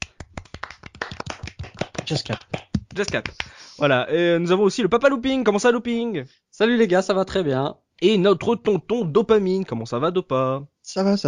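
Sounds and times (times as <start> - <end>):
small group applauding: 0.0 - 3.6
speech: 2.1 - 11.2.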